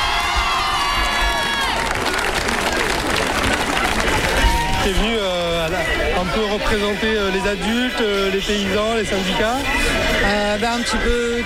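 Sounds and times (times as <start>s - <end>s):
crowd applauding: 0.0s - 5.1s
speech: 4.9s - 5.1s, 6.2s - 11.4s.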